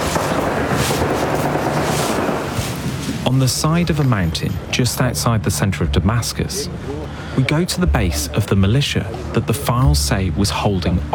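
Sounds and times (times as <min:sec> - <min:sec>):
distant gunfire: 0:00.0 - 0:02.8
speech: 0:03.3 - 0:11.1.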